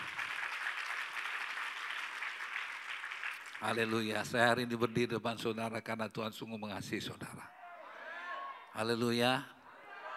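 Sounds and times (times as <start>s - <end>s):
audience applauding: 0.0s - 4.0s
speech: 3.6s - 7.6s, 8.8s - 9.6s.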